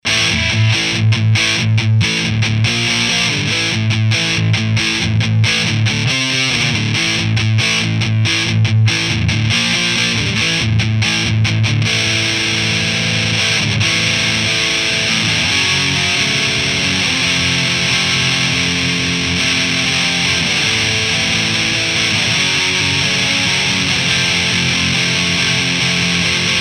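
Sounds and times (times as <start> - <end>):
distorted amplifier: 0.0 - 26.5.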